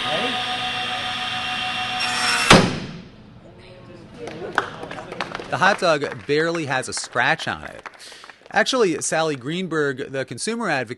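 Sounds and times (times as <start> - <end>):
SawStop table saw high-pitched whine: 0.0 - 2.6
SawStop table saw blade slamming to a stop: 2.0 - 3.2
speech: 5.5 - 10.9.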